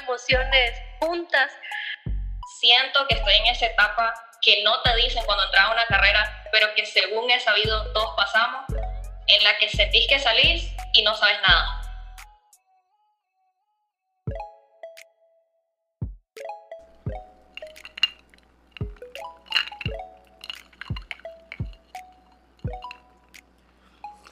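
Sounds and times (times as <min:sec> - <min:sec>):
speech: 0:00.2 - 0:01.7, 0:02.6 - 0:11.8
whisky being poured into a glass: 0:16.9 - 0:23.6.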